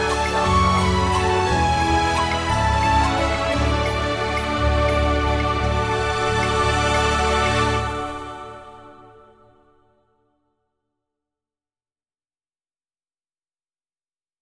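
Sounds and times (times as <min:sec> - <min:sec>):
Indian music with less percussion: 0:00.0 - 0:08.8.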